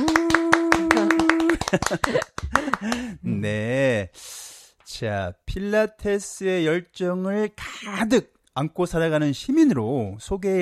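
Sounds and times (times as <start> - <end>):
group clapping hands together: 0.0 - 3.2
speech: 1.7 - 10.5.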